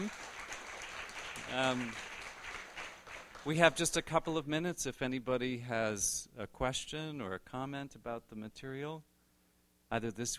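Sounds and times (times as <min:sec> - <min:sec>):
speech: 0:00.0 - 0:00.2, 0:01.5 - 0:02.1, 0:03.4 - 0:09.1, 0:09.9 - 0:10.3
faint audience applause for the actors: 0:00.0 - 0:03.6.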